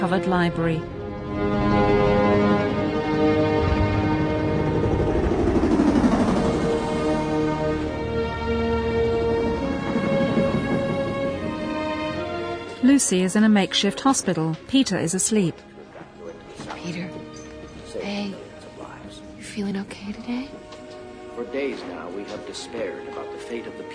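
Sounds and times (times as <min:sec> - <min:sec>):
speech: 0:00.0 - 0:01.9, 0:12.8 - 0:15.7, 0:19.6 - 0:20.7, 0:21.4 - 0:23.9
military helicopters flying over: 0:02.7 - 0:12.8.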